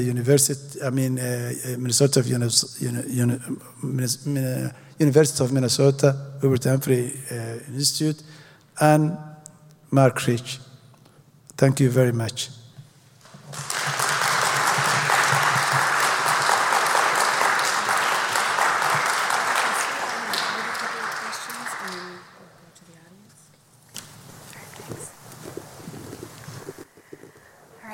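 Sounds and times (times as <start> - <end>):
speech: 0.0 - 9.3, 9.9 - 10.6, 11.6 - 12.6
crowd applauding: 13.3 - 22.4.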